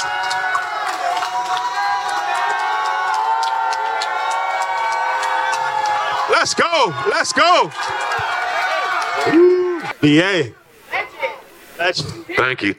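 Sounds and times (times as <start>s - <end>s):
crowd at a nightlife event cheering and applauding: 0.0s - 10.0s
whooping and whistle-like shouts: 0.0s - 10.0s
speech: 6.4s - 8.4s, 9.2s - 10.6s, 11.8s - 12.7s.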